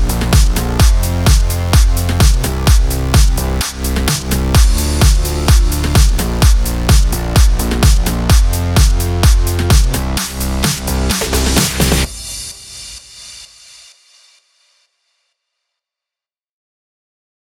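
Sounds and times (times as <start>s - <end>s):
progressive house music in D minor: 0.0s - 13.9s.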